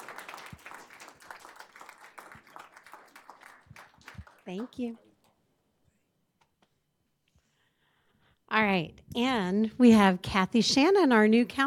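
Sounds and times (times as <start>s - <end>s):
audience applause: 0.0s - 5.0s
speech: 4.5s - 5.1s, 8.6s - 11.6s.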